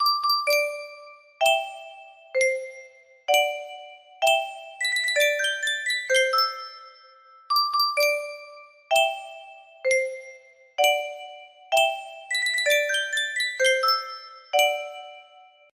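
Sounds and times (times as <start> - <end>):
Sankyo custom tune music box melody: 0.0 - 15.7.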